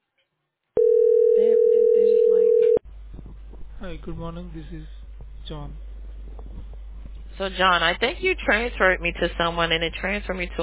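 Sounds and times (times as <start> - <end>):
telephone ringback tone: 0.8 - 2.8
speech: 4.0 - 5.9, 7.4 - 10.6.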